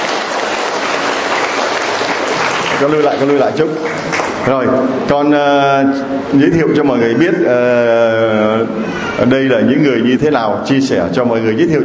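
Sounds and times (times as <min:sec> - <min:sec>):
audience applause at a gathering: 0:00.0 - 0:04.4
speech: 0:02.8 - 0:11.8.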